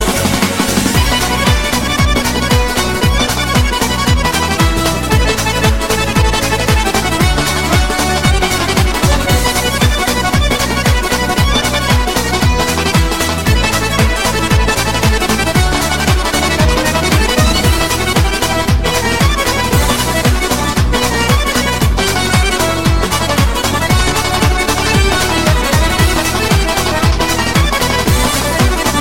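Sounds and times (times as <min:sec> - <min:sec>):
lezginka dance music: 0:00.0 - 0:29.0.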